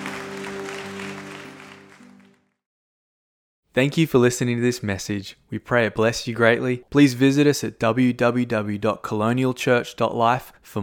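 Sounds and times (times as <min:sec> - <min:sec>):
audience applauding in a church: 0:00.0 - 0:02.6
speech: 0:03.8 - 0:10.8.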